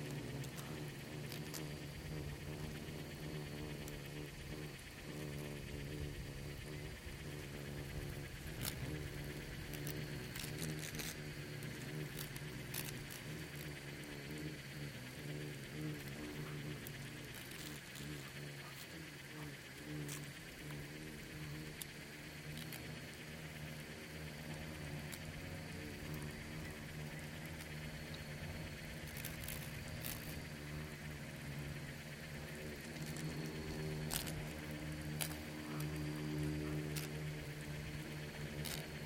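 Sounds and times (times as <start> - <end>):
insects droning in a swarm: 0.0 - 39.0.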